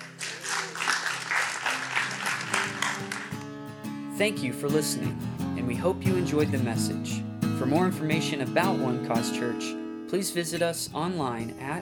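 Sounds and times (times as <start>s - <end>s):
audience hand clapping: 0.0s - 3.6s
speech: 4.2s - 11.8s.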